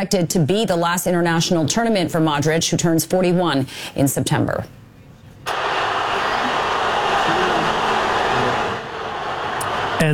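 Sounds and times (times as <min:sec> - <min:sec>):
speech: 0:00.0 - 0:04.8, 0:10.0 - 0:10.1
thousands of football fans roaring and cheering in celebration: 0:05.5 - 0:10.1.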